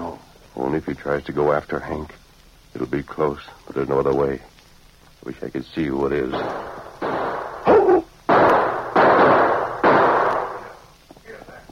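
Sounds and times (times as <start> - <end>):
speech: 0.6 - 2.2, 2.8 - 4.5, 5.2 - 6.8
gunshots from a masked man in a radio drama: 6.2 - 10.8.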